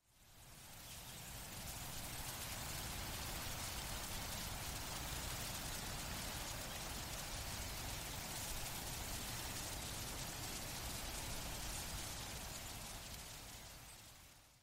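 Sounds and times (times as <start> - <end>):
mid-strength wind: 0.0 - 14.6.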